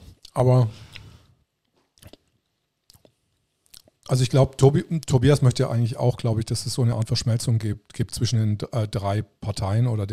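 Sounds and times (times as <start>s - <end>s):
person chewing while eating: 0.1s - 1.2s, 1.8s - 4.1s
speech: 0.4s - 0.9s, 4.1s - 10.1s.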